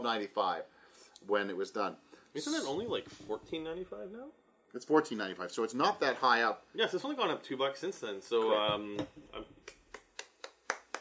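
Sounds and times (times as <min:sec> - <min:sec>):
speech: 0:00.0 - 0:09.6
one person's solo applause: 0:09.6 - 0:10.9.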